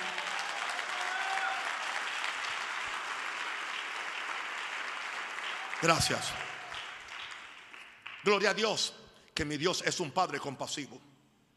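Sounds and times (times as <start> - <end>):
audience applauding: 0.0 - 8.4
speech: 5.8 - 6.5, 8.2 - 11.1.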